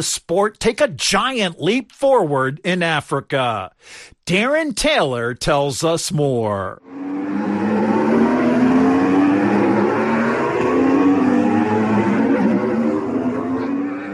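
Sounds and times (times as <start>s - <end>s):
speech: 0.0s - 7.6s
electric-powered Formula E racing cars passing: 6.8s - 14.1s.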